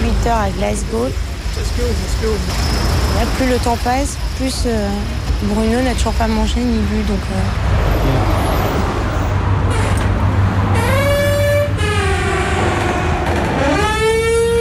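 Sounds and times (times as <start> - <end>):
speech: 0.2 - 8.4
gym entrance door making odd noise: 7.8 - 14.5.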